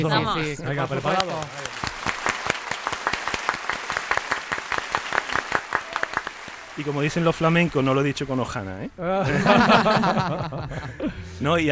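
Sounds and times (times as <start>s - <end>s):
speech: 0.0s - 1.8s, 6.8s - 11.6s
applause: 0.8s - 8.6s
laughter: 9.0s - 11.4s.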